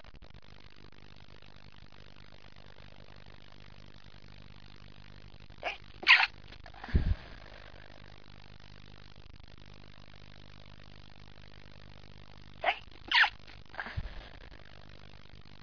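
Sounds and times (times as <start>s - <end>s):
woman stifling: 12.6s - 14.7s.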